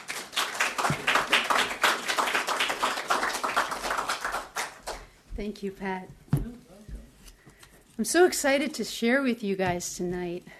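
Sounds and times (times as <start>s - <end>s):
audience applauding to welcome a guest: 0.0s - 5.1s
speech: 5.4s - 6.2s, 8.0s - 10.5s.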